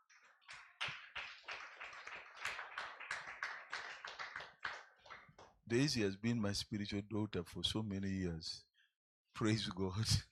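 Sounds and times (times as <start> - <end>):
audience clapping: 0.0 - 5.6
speech: 5.7 - 8.7, 9.4 - 10.2.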